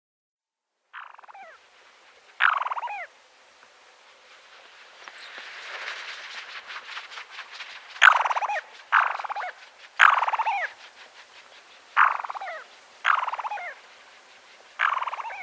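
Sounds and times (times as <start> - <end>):
Black-bellied sandgrouse calls: 1.0 - 1.6, 2.2 - 3.1, 8.0 - 15.4.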